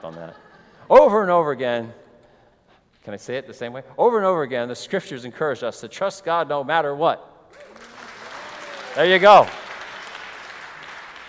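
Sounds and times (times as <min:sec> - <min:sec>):
speech: 0:00.0 - 0:02.0, 0:03.0 - 0:07.8, 0:09.0 - 0:09.6
crowd applauding: 0:07.5 - 0:11.2.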